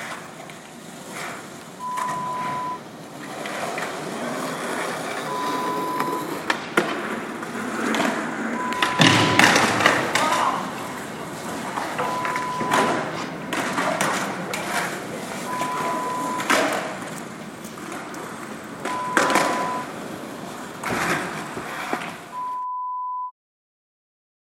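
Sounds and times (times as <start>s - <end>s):
skateboarding sounds: 0.0s - 22.6s.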